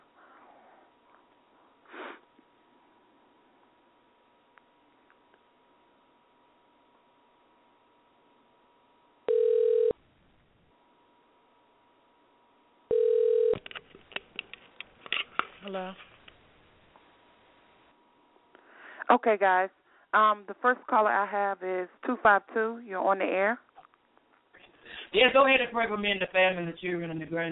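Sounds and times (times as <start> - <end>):
telephone line tone: 9.3 - 10.0, 12.9 - 13.7
speech: 15.7 - 16.1, 19.1 - 23.6, 25.1 - 27.5.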